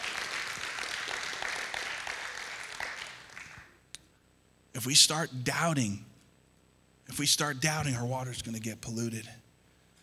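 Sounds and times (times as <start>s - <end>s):
audience applause: 0.0s - 3.7s
speech: 4.8s - 6.1s, 7.2s - 9.4s.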